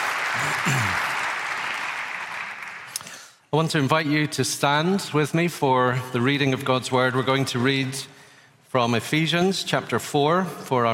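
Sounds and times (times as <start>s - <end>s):
church audience applause welcoming a speaker to the pulpit: 0.0s - 3.3s
speech: 0.5s - 1.1s, 3.5s - 10.9s.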